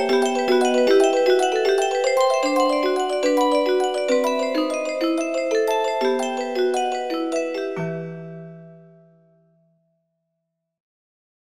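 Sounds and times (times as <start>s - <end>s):
fantasy dance music: 0.0s - 8.7s.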